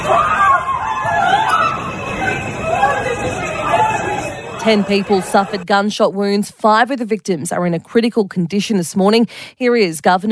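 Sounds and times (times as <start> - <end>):
babble of frightened voices: 0.0 - 5.6
panicked crowd screaming: 0.0 - 5.6
panicked crowd shouting while fleeing a subway shooting: 0.0 - 5.6
speech: 4.6 - 10.3.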